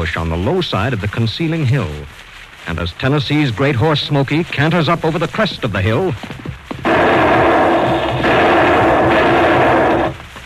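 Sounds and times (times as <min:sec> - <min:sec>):
speech: 0:00.0 - 0:06.4
gunshots at close range: 0:06.8 - 0:10.2.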